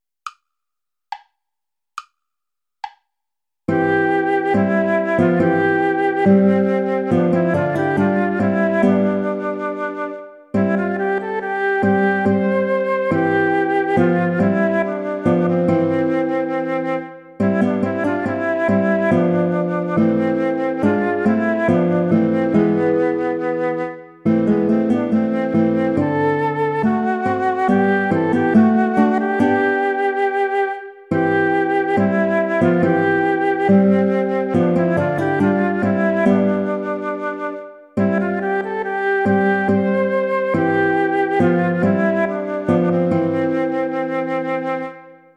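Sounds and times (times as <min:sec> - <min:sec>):
play-along backing track without guitar: 0:02.0 - 0:45.3.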